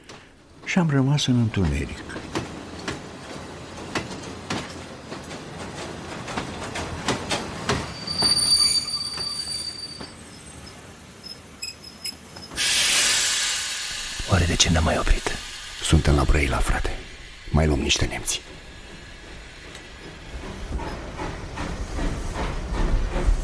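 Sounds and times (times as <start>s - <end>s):
railway wagon wheels clattering over rail joints: 0.0s - 23.4s
speech: 0.7s - 2.2s, 14.8s - 18.5s
railway wagon wheel squeal: 7.8s - 12.7s
loud hissing burst: 12.6s - 19.4s.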